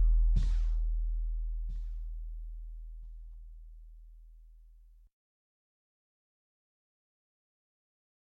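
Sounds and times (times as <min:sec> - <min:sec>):
drum and bass with live drums: 0:00.0 - 0:02.7.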